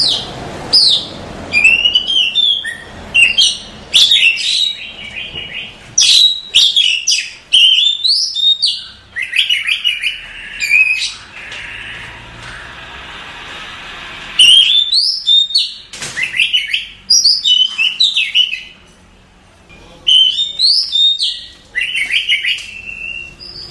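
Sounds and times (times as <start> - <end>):
Oriental magpie-robin singing: 0.0 - 12.7, 14.4 - 18.8, 20.0 - 23.6.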